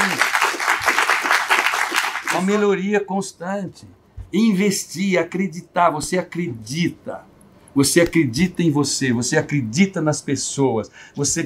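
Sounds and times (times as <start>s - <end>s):
crowd applause: 0.0s - 2.6s
speech: 2.4s - 11.4s.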